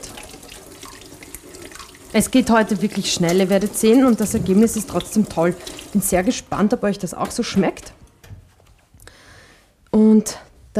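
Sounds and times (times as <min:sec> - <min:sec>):
water splashing as a carrot is rinsed: 0:00.0 - 0:06.6
tap water running while washing a carrot: 0:00.0 - 0:08.0
speech: 0:02.2 - 0:08.0, 0:10.2 - 0:10.7.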